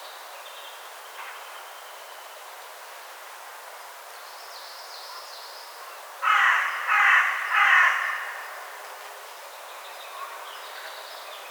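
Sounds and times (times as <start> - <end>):
Carrion crow Corvus corone cawing: 6.2 - 8.7.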